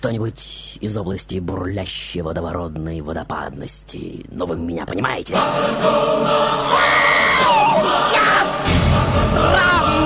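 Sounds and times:
speech: 0.0 - 10.0
loud choir of many voices: 5.3 - 10.0.

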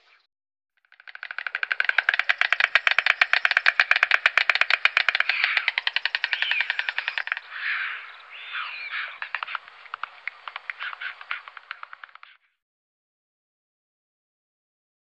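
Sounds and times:
white stork bill clattering: 0.8 - 12.5.

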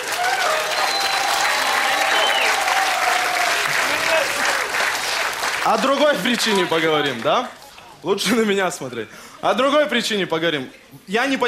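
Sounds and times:
audience applause: 0.0 - 7.7
speech: 5.6 - 11.4.

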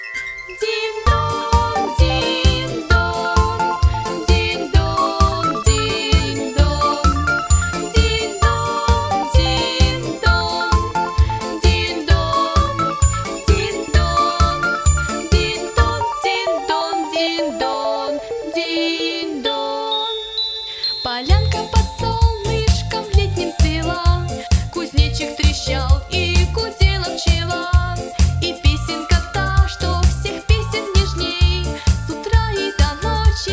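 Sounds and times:
tinkling little bell melody: 0.0 - 17.2, 18.2 - 33.5
speech: 0.5 - 1.0
pulsing low beat: 1.1 - 16.0.

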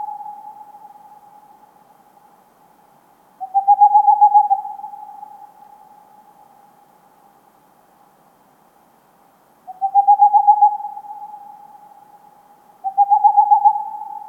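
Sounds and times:
Tengmalm's owl song of rapid pulsed low hoots: 0.0 - 1.6, 3.4 - 6.5, 9.7 - 12.2, 12.8 - 14.2.

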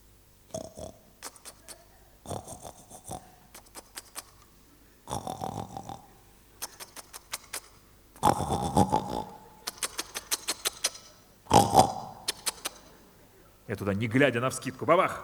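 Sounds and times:
person imitating wild boar grunting in bushes: 0.5 - 4.3, 5.0 - 7.6, 8.2 - 12.8
speech: 8.2 - 9.0, 13.7 - 15.2.

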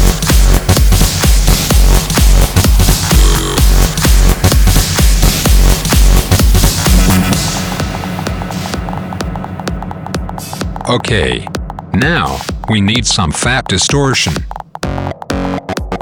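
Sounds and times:
crash cymbal: 0.0 - 10.8
snare drums: 0.0 - 15.9
speech: 10.9 - 14.6.

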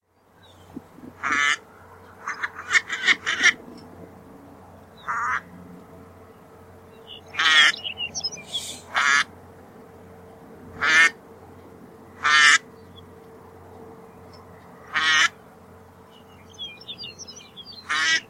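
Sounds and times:
northern pintail Anas acuta hoarse calls: 1.0 - 3.7, 5.0 - 5.5, 7.2 - 9.3, 10.8 - 11.2, 12.2 - 12.6, 14.8 - 15.4, 17.8 - 18.2.

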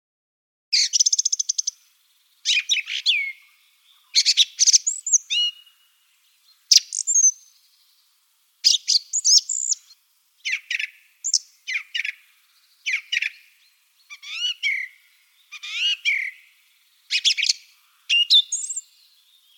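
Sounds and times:
song thrush singing rapid clusters of high notes: 0.7 - 19.5.

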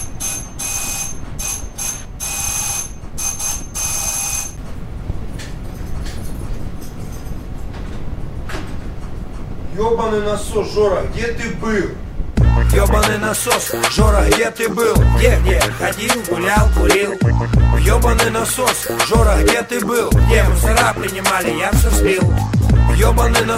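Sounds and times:
doorbell ringing: 0.0 - 4.6
speech: 9.8 - 12.0, 12.7 - 23.5.

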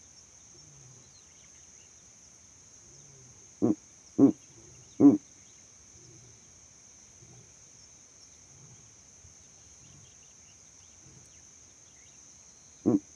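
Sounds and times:
owl hooting at night: 3.6 - 4.4, 5.0 - 5.2, 12.8 - 13.0.

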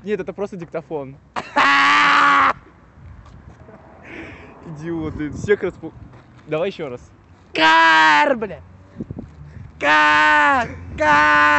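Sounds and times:
speech: 0.0 - 2.5, 4.2 - 9.1, 9.8 - 11.5
man imitating rooster crowing: 1.6 - 2.6, 9.8 - 11.5.

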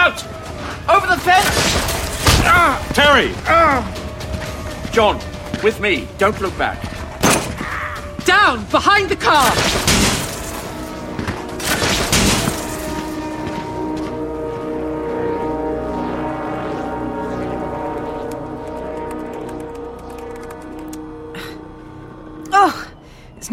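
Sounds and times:
humming tonal backdrop: 0.0 - 23.5
speech: 0.1 - 4.0, 5.0 - 6.9, 8.2 - 10.0
burst of gunshots: 9.4 - 10.6, 11.6 - 12.8.

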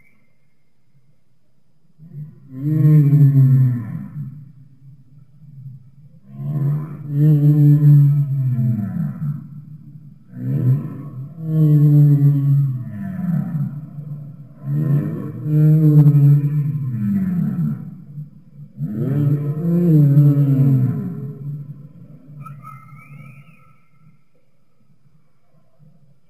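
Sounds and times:
humpback whale singing: 2.0 - 4.4, 6.3 - 9.7, 10.3 - 24.0.

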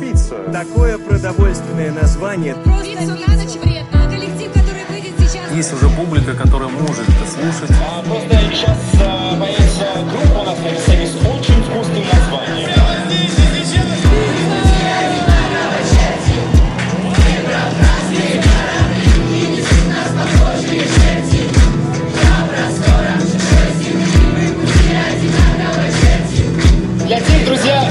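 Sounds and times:
speech: 0.4 - 4.2, 5.5 - 11.3
loud crowd applauding and cheering: 6.9 - 27.9.

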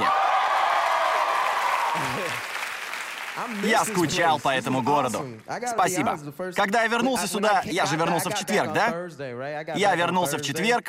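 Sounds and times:
audience applause: 0.0 - 5.4
speech: 3.4 - 10.8.

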